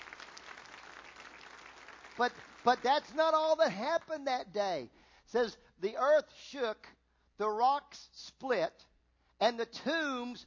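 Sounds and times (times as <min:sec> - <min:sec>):
church congregation clapping as an offering to the Lord: 0:00.0 - 0:04.2
speech: 0:02.2 - 0:10.4.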